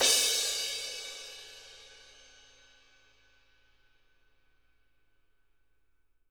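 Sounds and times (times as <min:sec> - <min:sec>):
cymbals: 0:00.0 - 0:03.1.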